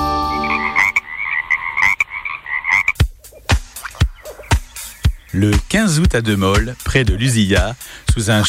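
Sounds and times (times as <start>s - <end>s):
frog croaking: 0.2s - 5.4s
speech: 5.4s - 8.4s.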